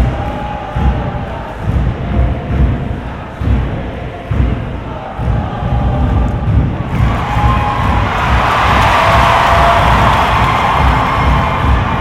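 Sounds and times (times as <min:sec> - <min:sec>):
stadium crowd at a soccer game murmuring: 0:00.0 - 0:11.9
stadium crowd roar at a soccer game: 0:06.9 - 0:11.9.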